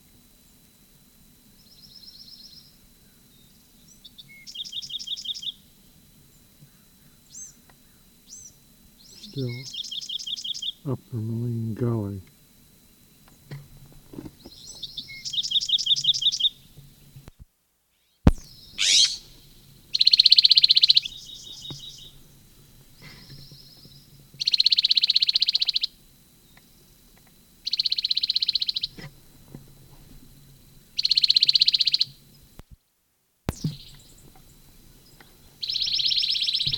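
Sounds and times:
bird calling in a gully: 6.7s - 10.9s, 14.2s - 17.0s, 18.3s - 26.0s, 27.6s - 29.2s, 30.9s - 32.4s, 33.5s - 36.7s
speech: 9.4s - 9.8s, 10.8s - 12.3s.

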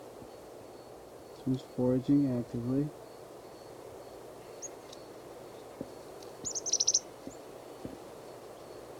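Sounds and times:
chickadee calls: 0.0s - 8.9s
soft outdoor hiss: 0.0s - 8.9s
speech: 1.4s - 3.0s.

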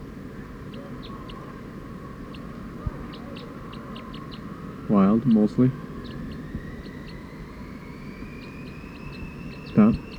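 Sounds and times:
wild bird calling: 0.0s - 10.1s
speech: 4.9s - 5.8s.

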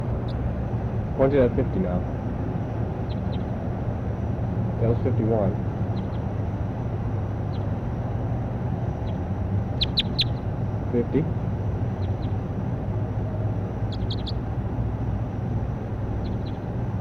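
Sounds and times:
steady low rumble: 0.0s - 16.9s
speech: 1.2s - 2.2s, 4.8s - 5.6s, 10.9s - 11.4s
short high-pitched bird chirps: 3.0s - 3.6s, 5.9s - 6.3s, 7.4s - 7.8s, 9.0s - 10.5s, 11.9s - 12.4s, 13.8s - 14.4s, 16.1s - 16.7s.

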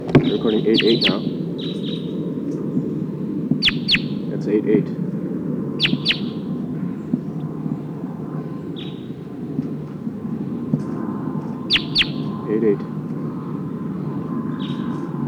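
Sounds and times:
wild Sikansis bird calling in trees: 0.0s - 15.2s
speech: 0.3s - 1.4s, 4.6s - 5.0s.

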